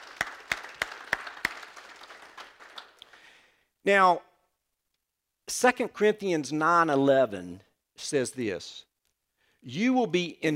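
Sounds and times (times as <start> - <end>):
audience round of applause: 0.0 - 3.3
speech: 3.8 - 4.3, 5.5 - 8.9, 9.6 - 10.5.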